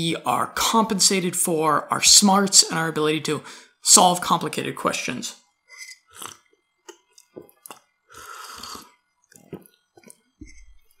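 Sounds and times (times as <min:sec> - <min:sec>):
speech: 0:00.0 - 0:05.4
person sipping hot tea: 0:05.7 - 0:10.9
swallow: 0:05.8 - 0:10.7.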